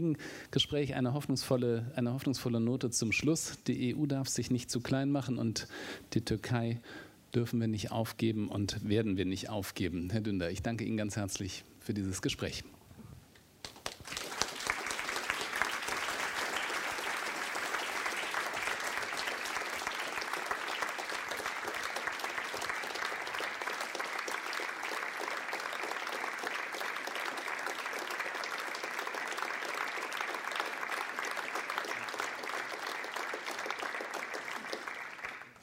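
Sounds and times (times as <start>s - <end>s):
speech: 0.0s - 12.8s
audience applause: 13.7s - 35.6s.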